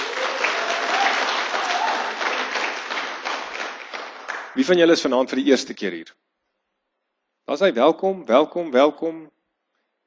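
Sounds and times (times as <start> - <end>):
crowd applauding: 0.0 - 4.7
speech: 4.6 - 6.2, 7.5 - 9.4.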